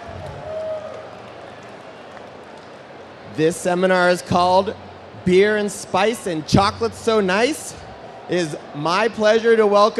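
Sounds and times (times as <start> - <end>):
audience applause: 0.0 - 3.1
speech: 3.4 - 9.9.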